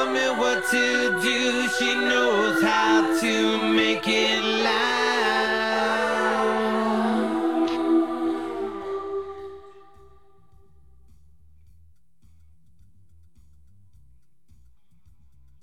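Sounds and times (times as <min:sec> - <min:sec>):
person singing: 0:00.0 - 0:10.1.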